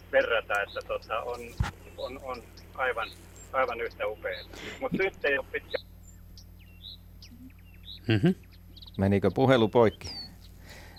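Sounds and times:
Blyth's reed warbler singing: 0:00.0 - 0:10.9
steady low hum: 0:00.0 - 0:10.9
speech: 0:00.1 - 0:05.8, 0:08.1 - 0:10.2.

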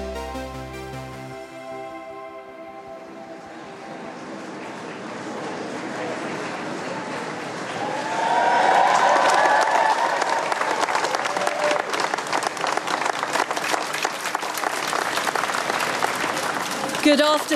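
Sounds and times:
applause for new prime minister: 0:06.4 - 0:17.5
speech: 0:17.1 - 0:17.5.

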